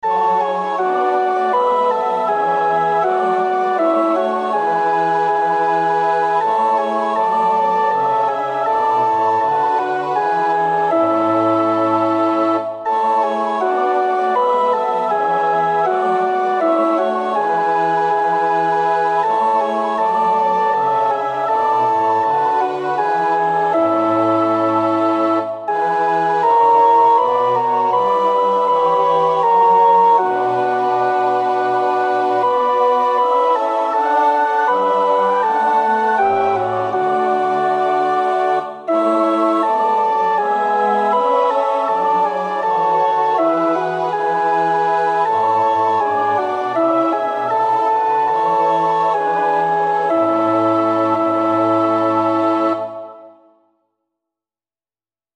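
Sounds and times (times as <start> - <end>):
choir alto part singing for practice: 0.0 - 53.5.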